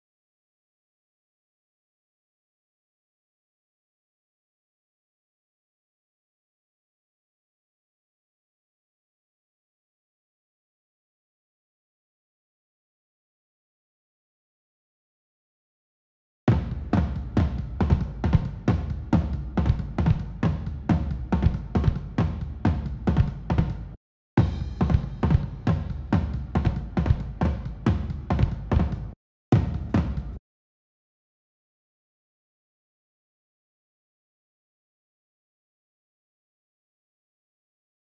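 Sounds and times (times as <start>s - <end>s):
drums: 16.5s - 30.4s.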